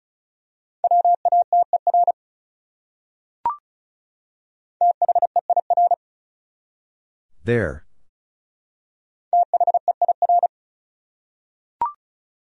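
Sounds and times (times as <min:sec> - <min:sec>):
Morse code beeps at 35 words per minute: 0:00.8 - 0:02.1, 0:04.8 - 0:06.0, 0:09.4 - 0:10.5
speech: 0:07.4 - 0:07.8.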